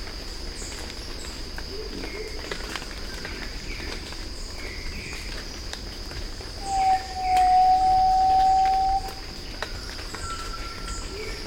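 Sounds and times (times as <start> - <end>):
slaty-breasted tinamou calling: 6.6 - 9.3.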